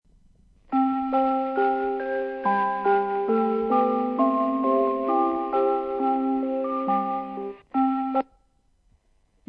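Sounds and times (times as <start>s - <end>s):
melody: 0.7s - 8.3s.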